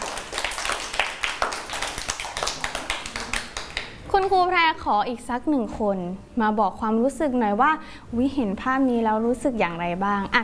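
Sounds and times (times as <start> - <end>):
classroom hands clapping: 0.0 - 4.3
speech: 4.1 - 10.4.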